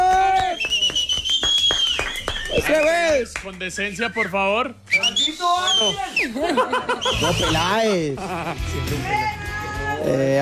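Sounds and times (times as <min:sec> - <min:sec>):
audience applause: 0:00.0 - 0:03.5
audience whistling: 0:00.0 - 0:07.8
speech: 0:02.7 - 0:09.4, 0:10.0 - 0:10.4
laughter: 0:05.6 - 0:09.6.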